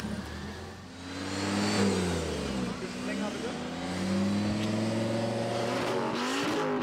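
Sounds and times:
car engine revving during exhaust noise test: 0.0s - 6.8s.

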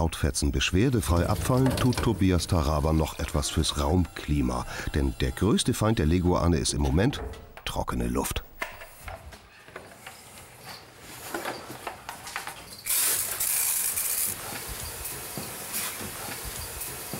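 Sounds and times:
speech: 0.0s - 8.3s
water mist spraying: 12.8s - 17.1s.

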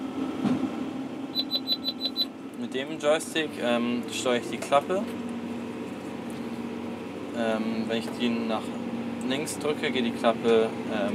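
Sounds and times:
running engine droning: 0.0s - 11.1s
baler warning signal high-pitched beeps: 1.3s - 2.3s
speech: 2.8s - 5.2s, 7.4s - 11.1s.

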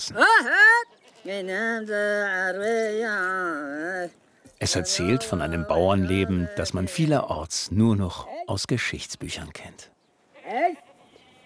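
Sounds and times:
speech: 0.0s - 10.0s
goat grazing on an island bleating: 0.2s - 7.1s, 10.3s - 11.4s.

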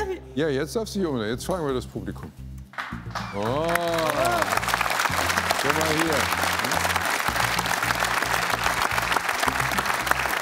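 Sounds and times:
speech: 0.4s - 2.5s, 3.3s - 4.7s, 5.6s - 6.5s
encouraging audience applause: 3.2s - 10.4s.

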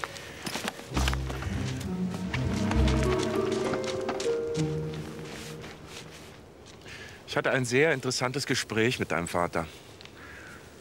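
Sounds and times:
footsteps of someone running: 0.0s - 6.9s
sustained low tones: 0.8s - 6.6s
speech: 7.4s - 9.8s.

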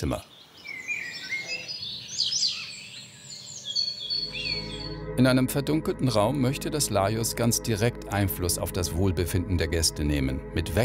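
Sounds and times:
speech: 0.0s - 0.4s, 5.2s - 10.8s
various bird calls indoors: 0.0s - 5.0s.

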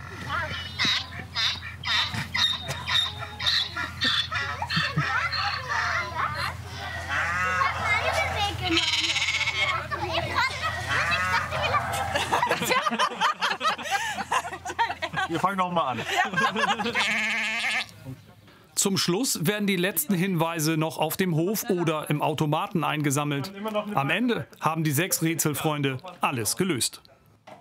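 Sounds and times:
donkey braying: 0.0s - 12.3s, 16.8s - 18.0s
laughter: 2.8s - 8.8s, 9.6s - 17.4s
sheep bleating: 8.6s - 9.9s, 16.9s - 17.9s
cow mooing: 8.7s - 9.8s
speech: 15.5s - 17.4s, 18.8s - 27.1s.

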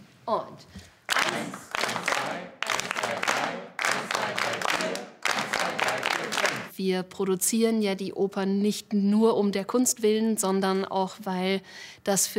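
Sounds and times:
speech: 0.3s - 5.1s, 6.2s - 12.3s
group clapping in rhythm: 1.0s - 6.8s.

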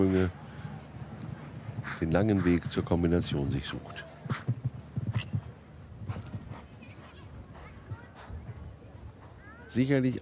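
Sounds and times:
speech: 0.0s - 0.4s, 1.8s - 4.6s, 9.8s - 10.2s
horse galloping hoofbeats: 4.2s - 9.5s.

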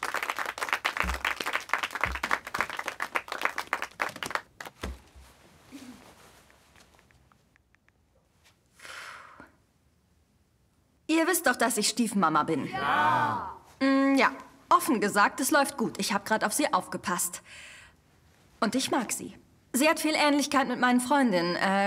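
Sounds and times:
crowd applause: 0.0s - 4.7s
speech: 11.2s - 17.7s, 18.6s - 21.8s.

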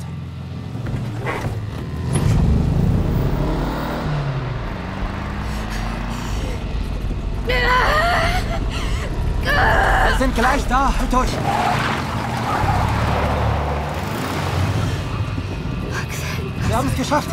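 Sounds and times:
car engine drone while driving: 0.0s - 17.3s
car road noise rumbling: 0.0s - 17.3s
speech: 10.2s - 12.0s, 16.7s - 17.3s.

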